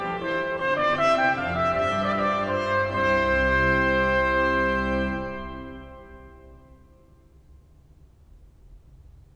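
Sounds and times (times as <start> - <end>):
trumpet playing: 0.0 - 7.2.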